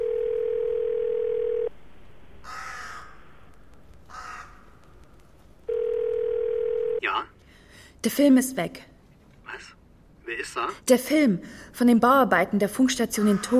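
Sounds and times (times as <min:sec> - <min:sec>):
telephone call ringing tone: 0:00.0 - 0:01.7, 0:05.7 - 0:07.0
crow cawing: 0:02.4 - 0:03.3, 0:04.1 - 0:04.9, 0:13.2 - 0:13.5
speech: 0:08.0 - 0:08.9, 0:10.4 - 0:13.5.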